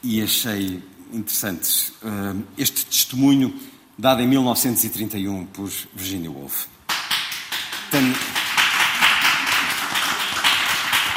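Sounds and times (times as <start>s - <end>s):
speech: 0.0s - 6.8s, 7.9s - 8.4s
audience applause: 6.9s - 11.1s.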